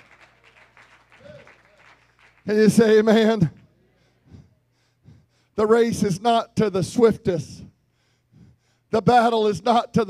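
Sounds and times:
audience clapping hands: 0.0s - 3.7s
speech: 2.4s - 3.6s, 5.6s - 7.6s, 8.9s - 10.0s.

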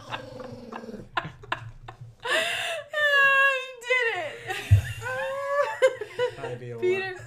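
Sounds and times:
dog growling when rubbed: 0.0s - 1.6s
laughter: 0.0s - 2.8s, 4.3s - 7.1s.

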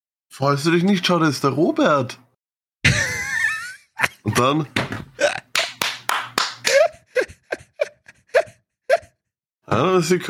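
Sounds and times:
speech: 0.4s - 2.2s, 4.0s - 5.1s, 9.7s - 10.2s
laughter: 2.9s - 4.6s, 6.6s - 9.1s
applause clapping: 5.5s - 6.7s.

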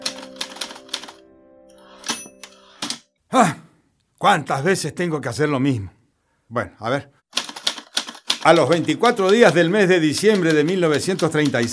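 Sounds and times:
typewriter being loaded with paper and typed on: 0.0s - 1.2s, 7.4s - 11.7s
speech: 3.3s - 3.6s, 4.2s - 7.2s, 8.4s - 11.7s.

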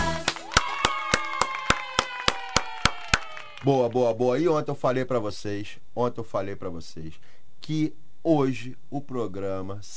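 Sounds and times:
round of applause: 0.2s - 4.2s
speech: 3.7s - 9.9s.

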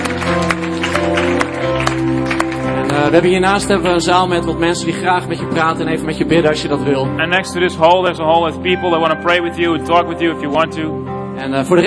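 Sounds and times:
audience clapping: 0.0s - 4.2s
speech: 3.1s - 11.8s.

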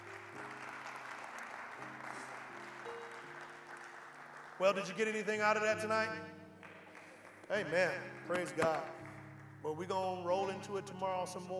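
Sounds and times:
audience hand clapping: 0.0s - 5.7s, 6.5s - 9.6s
speech: 4.6s - 6.4s, 7.5s - 9.0s, 9.6s - 11.5s.

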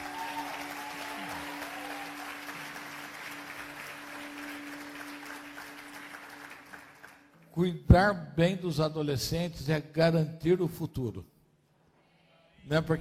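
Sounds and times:
audience applause: 0.0s - 7.4s
speech: 7.6s - 11.3s, 12.7s - 13.0s.

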